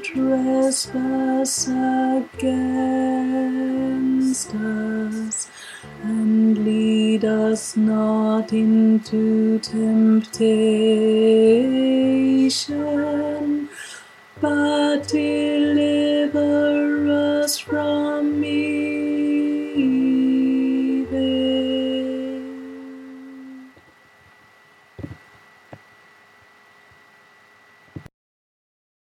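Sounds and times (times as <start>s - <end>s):
tenor singing a prayer: 0.0s - 13.7s, 14.4s - 23.7s.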